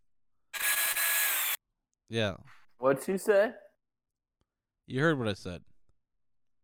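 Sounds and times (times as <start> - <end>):
power drill: 0.6 - 1.6
speech: 2.1 - 3.6, 4.9 - 5.7.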